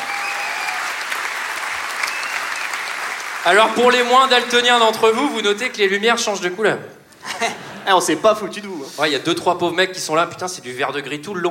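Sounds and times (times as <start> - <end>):
audience applause: 0.0 - 4.3
speech: 3.4 - 11.4
laughter: 7.2 - 8.0.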